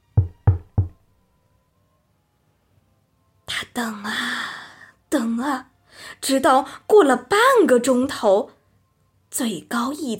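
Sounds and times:
knocking on a door with iron knocker: 0:00.2 - 0:01.0
speech: 0:03.8 - 0:04.4, 0:05.1 - 0:08.6, 0:09.3 - 0:10.1.

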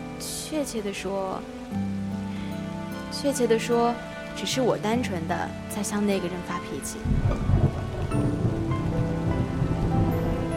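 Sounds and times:
light rain pattering on a surface: 0:00.0 - 0:10.5
speech: 0:00.5 - 0:02.0, 0:03.1 - 0:07.6.

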